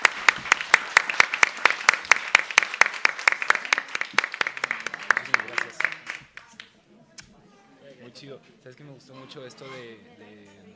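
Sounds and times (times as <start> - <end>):
audience clapping for staff at an event's registration and coffee area: 0.0 - 6.8
speech: 8.3 - 10.7.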